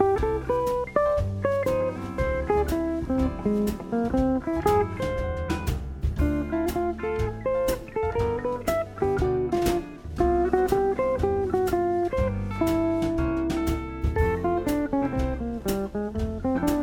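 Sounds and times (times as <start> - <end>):
elaborate comping chords: 0.0 - 16.8.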